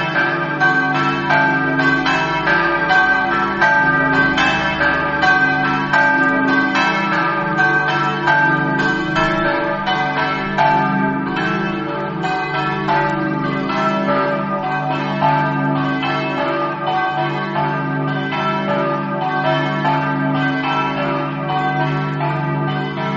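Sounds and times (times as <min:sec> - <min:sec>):
bells ringing: 0:00.0 - 0:23.1.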